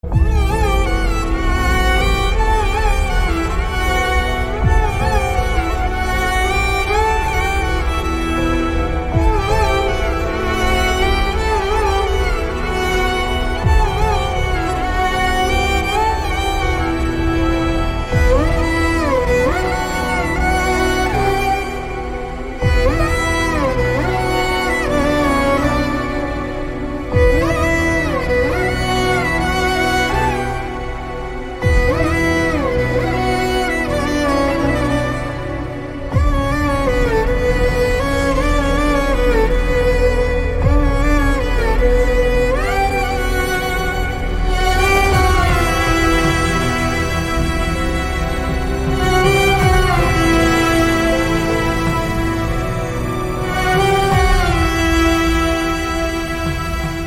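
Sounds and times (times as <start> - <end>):
instrumental music: 0.0 - 57.0.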